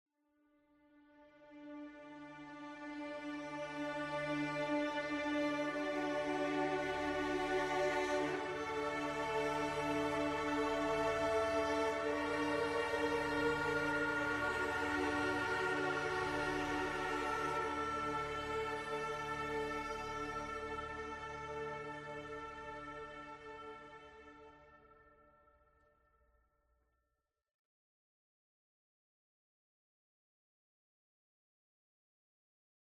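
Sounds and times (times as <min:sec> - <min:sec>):
ambient music: 0:01.4 - 0:25.4.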